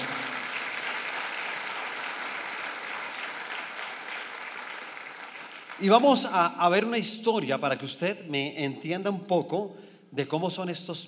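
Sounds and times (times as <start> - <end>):
audience applause: 0.0 - 6.1
speech: 5.8 - 11.0.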